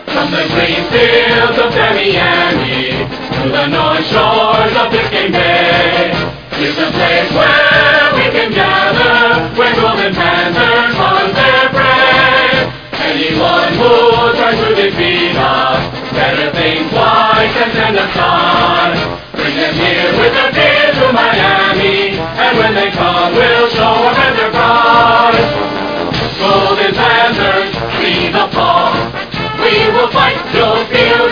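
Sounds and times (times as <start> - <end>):
singing vocals: 0.2 - 25.6, 26.4 - 31.3.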